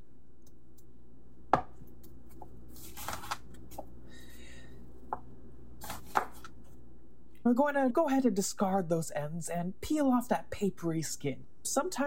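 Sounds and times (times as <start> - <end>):
sharp knife slicing an onion on a cutting board: 5.8 - 6.5
speech: 7.5 - 12.0.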